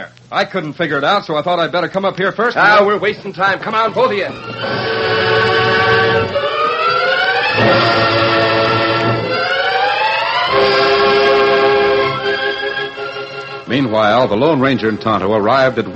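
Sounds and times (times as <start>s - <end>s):
speech: 0.0s - 5.4s, 13.7s - 15.9s
brass whistle blowing: 3.7s - 13.7s.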